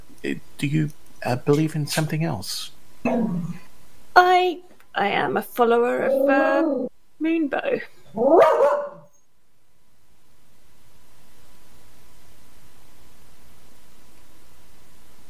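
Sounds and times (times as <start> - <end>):
faint steady hiss: 0.0 - 8.2, 8.8 - 15.2
speech: 0.2 - 3.6, 4.2 - 8.7
dog barking: 8.2 - 9.1.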